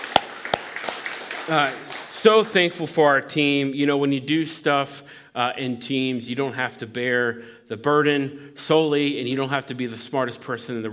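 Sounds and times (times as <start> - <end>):
scattered hand claps: 0.0 - 2.2
speech: 1.5 - 10.9.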